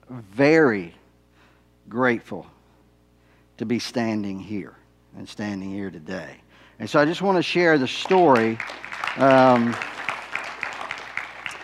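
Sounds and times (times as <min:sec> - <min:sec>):
speech: 0:00.1 - 0:01.0, 0:01.9 - 0:02.6, 0:03.6 - 0:09.9
audience applause: 0:08.0 - 0:11.6.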